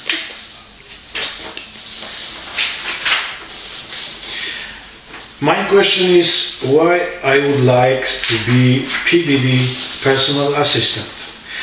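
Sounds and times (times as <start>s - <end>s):
sheets of paper rustling: 0.0s - 4.2s, 8.0s - 11.4s
speech: 5.4s - 11.2s.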